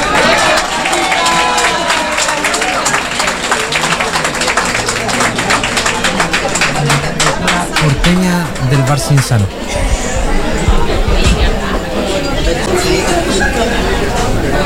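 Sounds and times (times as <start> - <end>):
audience applause: 0.0 - 9.6
crowd voices cheering: 0.0 - 14.6
speech: 8.9 - 10.0.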